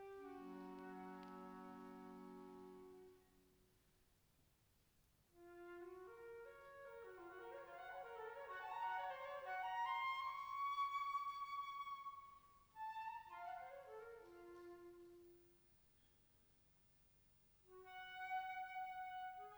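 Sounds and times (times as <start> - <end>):
flute concertino with concert band: 0.0 - 3.3, 5.4 - 15.4, 17.8 - 19.5.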